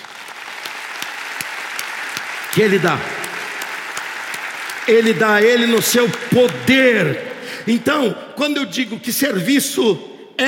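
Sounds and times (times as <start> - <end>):
audience applause: 0.0 - 7.6
speech: 2.6 - 3.2, 4.8 - 10.4.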